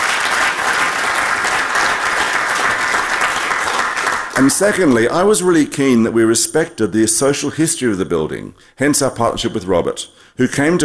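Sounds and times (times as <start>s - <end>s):
audience applause: 0.0s - 5.1s
speech: 4.4s - 10.8s.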